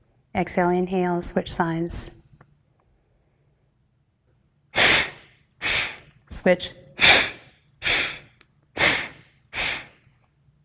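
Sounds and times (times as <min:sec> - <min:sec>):
speech: 0:00.4 - 0:02.2, 0:06.4 - 0:06.8
forceful breaths during a Pratiloma Pranayama breathing exercise: 0:04.8 - 0:06.1, 0:07.0 - 0:10.0.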